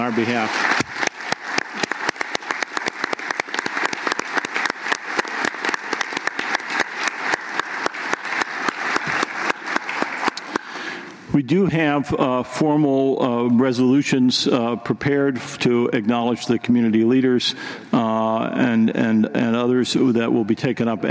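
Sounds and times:
speech: 0:00.0 - 0:00.8, 0:11.4 - 0:17.8, 0:18.4 - 0:21.0
audience applause: 0:00.0 - 0:11.1.

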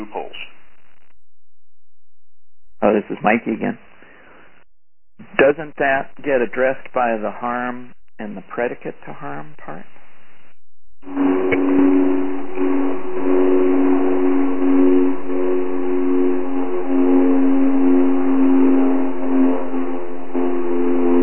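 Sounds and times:
speech: 0:02.9 - 0:03.9, 0:05.3 - 0:10.0, 0:11.0 - 0:11.7
airplane flying overhead: 0:11.0 - 0:21.2.

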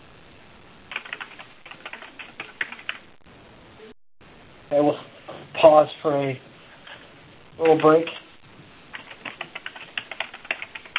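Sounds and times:
typing notes on a computer keyboard: 0:00.9 - 0:03.0, 0:08.9 - 0:10.9
speech: 0:04.7 - 0:06.5, 0:07.6 - 0:08.2.

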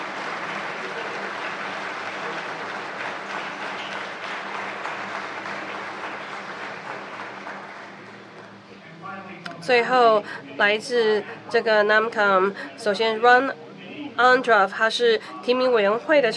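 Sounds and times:
audience applause: 0:00.0 - 0:08.4
speech: 0:09.6 - 0:13.6, 0:14.2 - 0:16.3.

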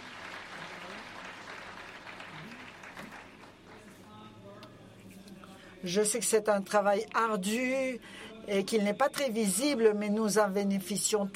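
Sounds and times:
audience applause: 0:00.0 - 0:03.9
speech: 0:05.8 - 0:11.3.

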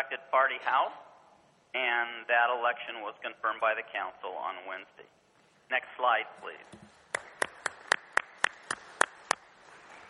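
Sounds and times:
speech: 0:00.1 - 0:01.1, 0:01.7 - 0:06.8
clapping: 0:07.1 - 0:09.5.

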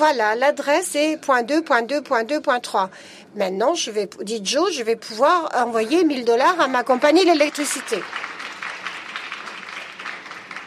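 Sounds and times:
speech: 0:00.0 - 0:08.3
audience applause: 0:07.4 - 0:10.6.

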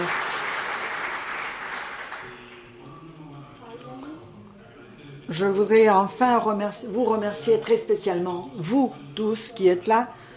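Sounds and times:
audience applause: 0:00.0 - 0:02.5
speech: 0:05.3 - 0:10.3.

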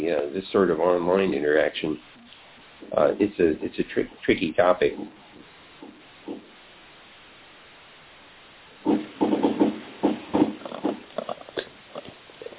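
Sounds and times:
speech: 0:00.1 - 0:02.2, 0:02.8 - 0:05.2
keyboard typing: 0:08.8 - 0:11.1.

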